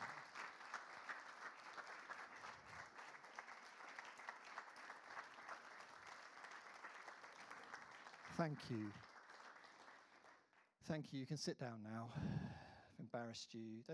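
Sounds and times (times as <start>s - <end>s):
audience applause: 0.0s - 10.5s
speech: 8.4s - 9.1s, 10.9s - 13.9s.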